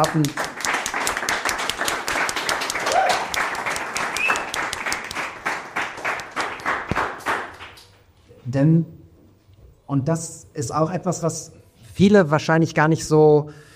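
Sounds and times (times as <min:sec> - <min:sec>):
speech: 0:00.0 - 0:00.4, 0:08.5 - 0:09.0, 0:09.9 - 0:13.7
audience applause: 0:00.0 - 0:07.9.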